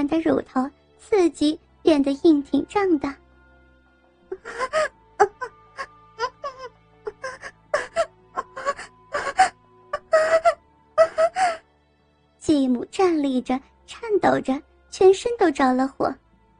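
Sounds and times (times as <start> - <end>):
speech: 0.0 - 3.2, 4.4 - 4.9, 12.6 - 16.2
woman moaning: 4.3 - 11.6.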